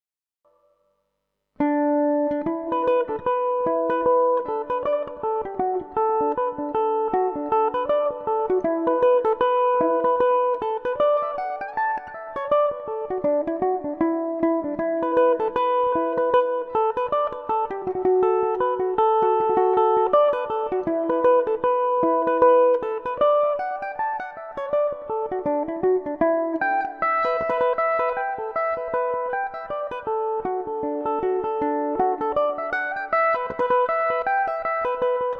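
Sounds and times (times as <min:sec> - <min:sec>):
mandolin tune: 0:01.6 - 0:35.3.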